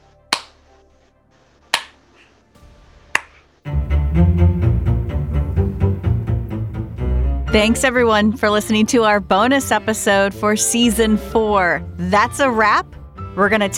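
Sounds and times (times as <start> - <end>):
slow hand claps: 0.3 - 0.6, 1.7 - 2.1, 3.2 - 3.4
loud music: 2.6 - 8.6
speech: 7.6 - 13.7.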